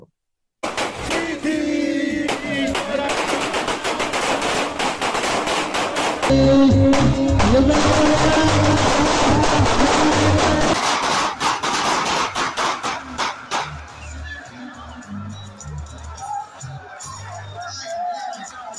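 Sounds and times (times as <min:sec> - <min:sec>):
police gunshots fired into the air: 0:00.6 - 0:01.4, 0:02.2 - 0:13.8.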